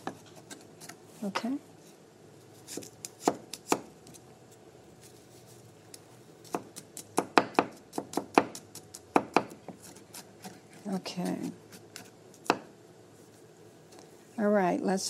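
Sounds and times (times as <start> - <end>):
speech: 1.2 - 1.7, 2.7 - 3.4, 10.9 - 11.6, 14.4 - 15.0
knife chopping on a cutting board: 2.7 - 3.9, 6.5 - 10.6.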